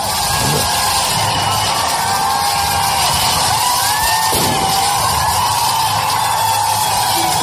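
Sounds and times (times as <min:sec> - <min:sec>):
fireworks going off among cinema seats: 0:00.0 - 0:07.4.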